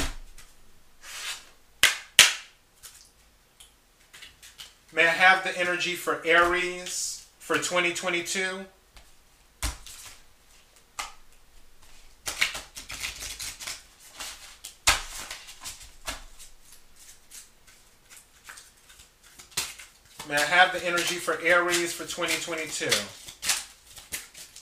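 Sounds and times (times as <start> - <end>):
tarot deck cards riffled and snapped while drawing an oracle card: 0.0 - 3.0, 9.0 - 11.2, 11.8 - 24.5
speech: 4.9 - 8.8, 20.3 - 23.2.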